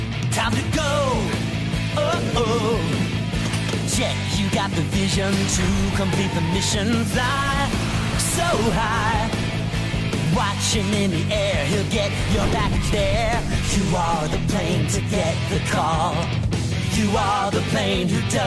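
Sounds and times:
song: 0:00.2 - 0:18.3.

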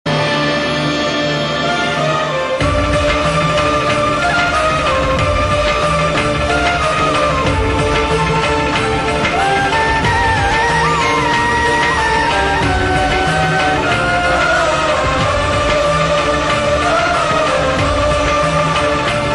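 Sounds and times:
background music: 0:00.1 - 0:19.3.

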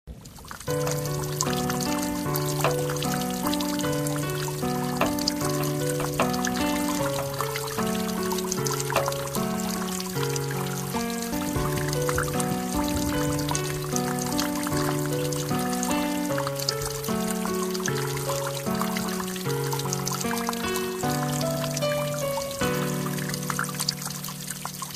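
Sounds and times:
water: 0:00.0 - 0:24.9.

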